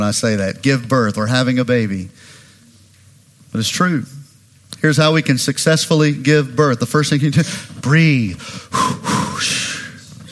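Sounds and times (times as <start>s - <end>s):
speech: 0.1s - 2.3s, 3.5s - 4.2s, 4.8s - 9.5s
exaggerated deep breath drawn as a joke: 8.4s - 10.3s.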